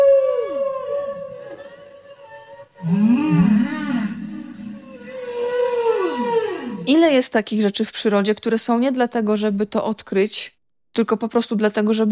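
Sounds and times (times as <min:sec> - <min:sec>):
underwater whale calls: 0:00.0 - 0:06.9
speech: 0:07.0 - 0:12.0.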